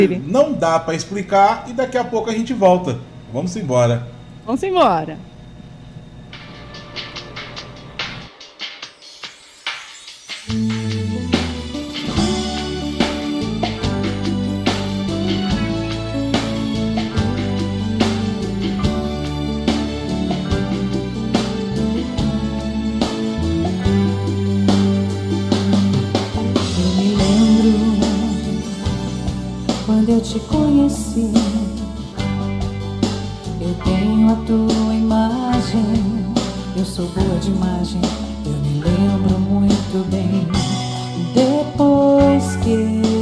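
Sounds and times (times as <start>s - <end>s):
speech: 0.0s - 5.3s
instrumental song with steady beat and strong bass line: 9.0s - 43.2s.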